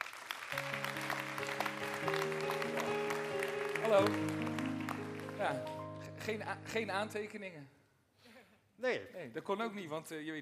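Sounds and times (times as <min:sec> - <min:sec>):
audience applause: 0:00.0 - 0:06.4
speech: 0:03.9 - 0:04.5, 0:05.4 - 0:07.8, 0:08.8 - 0:10.3.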